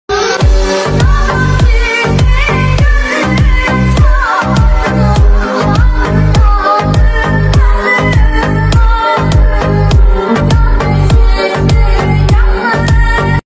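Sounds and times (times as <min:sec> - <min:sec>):
bass: 0:00.1 - 0:13.4.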